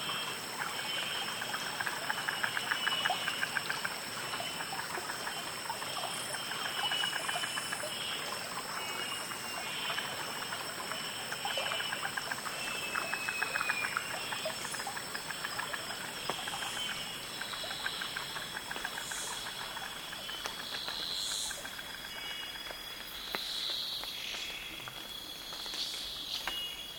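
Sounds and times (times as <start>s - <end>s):
walking in a rainforest: 0.0s - 26.9s.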